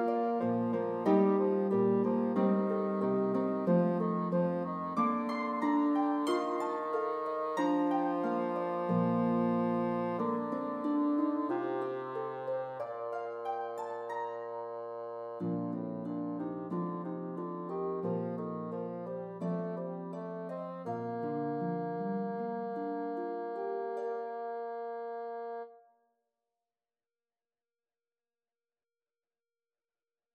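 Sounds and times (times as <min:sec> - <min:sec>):
bassoon: 0:00.0 - 0:25.8.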